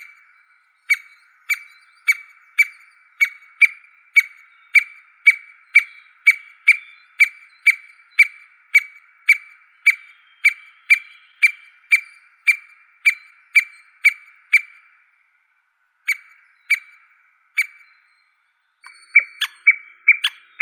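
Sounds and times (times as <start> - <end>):
white-backed woodpecker Dendrocopos leucotos: 0.0 - 15.2, 16.0 - 20.6.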